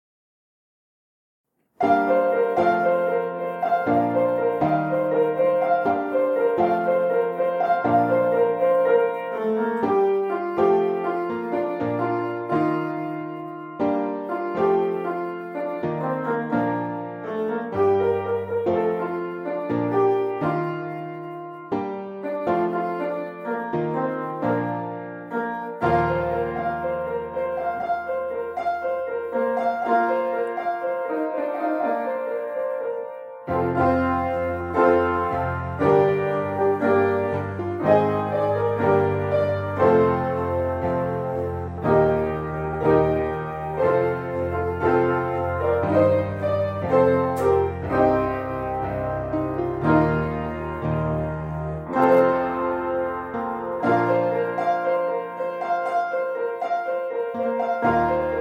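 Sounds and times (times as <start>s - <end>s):
piano cover: 1.6s - 58.4s.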